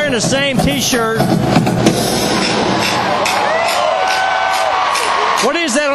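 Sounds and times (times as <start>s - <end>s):
speech: 0.1s - 1.7s, 5.7s - 5.9s
crowd clapping: 2.3s - 5.9s
drumsticks clapping together: 2.8s - 5.8s.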